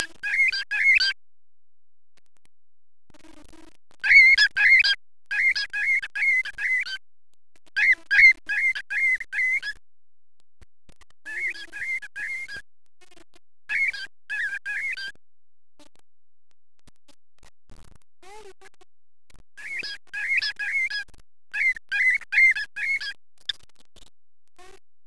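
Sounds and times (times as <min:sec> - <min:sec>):
birds: 0:00.0 - 0:01.2, 0:04.0 - 0:07.0, 0:07.8 - 0:09.8, 0:11.3 - 0:12.6, 0:13.7 - 0:15.2, 0:19.6 - 0:23.6.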